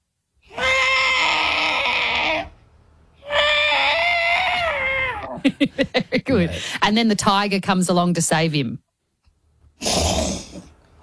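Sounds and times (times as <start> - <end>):
person imitating an elephant distress call: 0.5 - 2.6, 3.2 - 5.4
laughter: 5.3 - 6.5
speech: 5.5 - 8.9.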